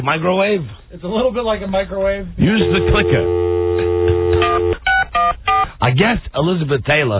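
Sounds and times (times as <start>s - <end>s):
speech: 0.0s - 3.9s, 5.3s - 7.1s
touch-tone telephone push-button dialing: 2.6s - 5.7s.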